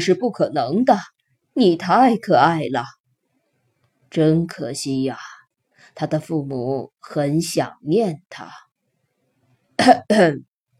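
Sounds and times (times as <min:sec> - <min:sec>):
speech: 0:00.0 - 0:03.0, 0:04.1 - 0:05.3, 0:06.0 - 0:08.6, 0:09.8 - 0:10.5
person coughing: 0:09.8 - 0:10.4.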